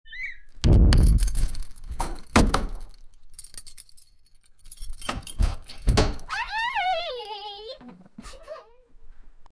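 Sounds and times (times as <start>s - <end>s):
door unlocking: 1.0s - 4.0s, 4.7s - 6.3s.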